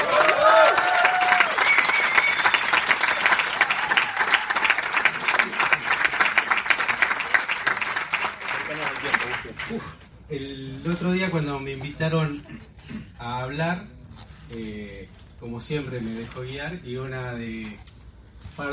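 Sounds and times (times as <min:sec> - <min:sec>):
cheers: 0:00.0 - 0:05.5
audience applause: 0:00.0 - 0:09.9
whistles: 0:01.3 - 0:03.6
speech: 0:11.3 - 0:17.9.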